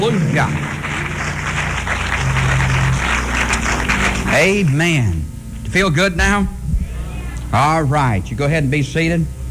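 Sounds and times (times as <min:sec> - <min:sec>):
speech: 0:00.0 - 0:00.7, 0:04.3 - 0:06.6, 0:07.5 - 0:09.4
audience clapping: 0:00.0 - 0:05.6.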